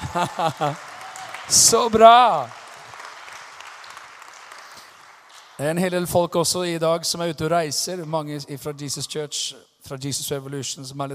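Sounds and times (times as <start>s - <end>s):
laughter: 0.0s - 2.2s
applause: 0.0s - 6.0s
speech: 0.1s - 0.9s, 1.5s - 2.6s, 5.6s - 11.1s.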